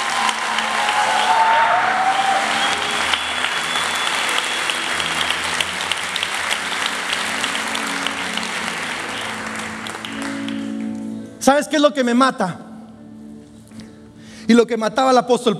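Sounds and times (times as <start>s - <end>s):
faint scattered whoops: 0.0s - 5.4s
audience applause: 0.0s - 11.1s
speech: 11.5s - 12.6s, 14.5s - 15.5s.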